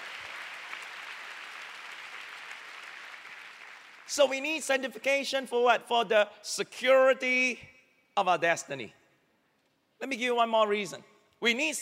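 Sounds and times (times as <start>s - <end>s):
audience clapping: 0.0s - 4.3s
speech: 4.1s - 9.0s, 10.0s - 11.7s.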